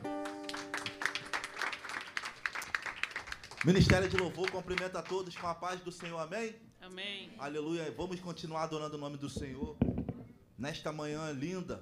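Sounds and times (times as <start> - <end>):
audience applause: 0.0 - 6.1
speech: 3.6 - 9.9, 10.6 - 11.7.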